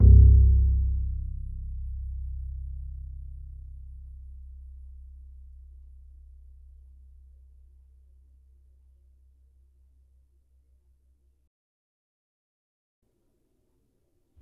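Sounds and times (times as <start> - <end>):
upright acoustic bass in E: 0.0 - 7.7.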